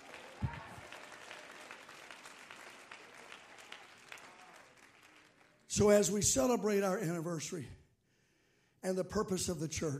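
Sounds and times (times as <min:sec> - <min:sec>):
audience clapping hands: 0:00.0 - 0:06.2
speech: 0:05.8 - 0:07.8, 0:08.8 - 0:09.9.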